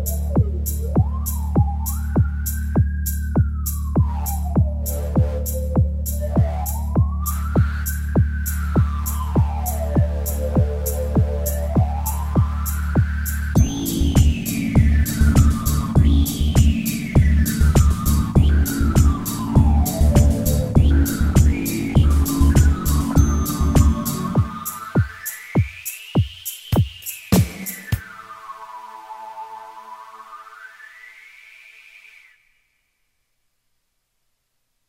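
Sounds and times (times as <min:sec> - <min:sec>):
simple instrumental music: 0:00.0 - 0:25.8.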